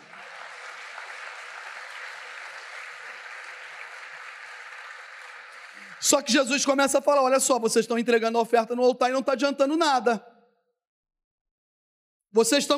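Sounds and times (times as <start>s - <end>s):
audience applause: 0.0s - 6.7s
speech: 5.9s - 10.3s, 12.4s - 12.7s.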